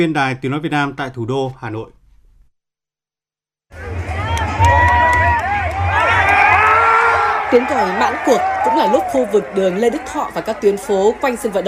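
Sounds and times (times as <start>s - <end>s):
speech: 0.0s - 2.0s, 7.5s - 11.6s
football fans shouting and cheering in the Hanoi streets after Vietnam's ASEAN Cup win: 3.7s - 11.6s.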